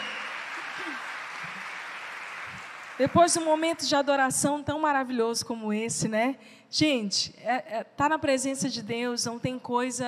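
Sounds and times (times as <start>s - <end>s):
audience applause: 0.0s - 3.9s
speech: 3.0s - 10.0s.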